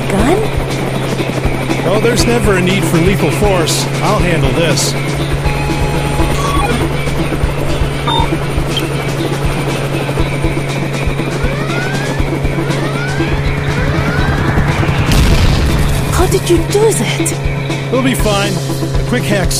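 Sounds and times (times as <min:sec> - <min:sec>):
helicopter pursuing a fleeing motorbike: 0:00.0 - 0:19.5
speech: 0:00.1 - 0:00.6, 0:01.2 - 0:05.4, 0:16.3 - 0:19.5
rising electronic swoops: 0:05.5 - 0:07.0, 0:08.1 - 0:08.9.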